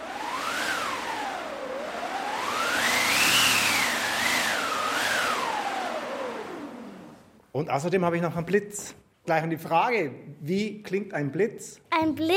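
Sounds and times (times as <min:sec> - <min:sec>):
wind machine: 0:00.0 - 0:07.4
speech: 0:07.6 - 0:12.3.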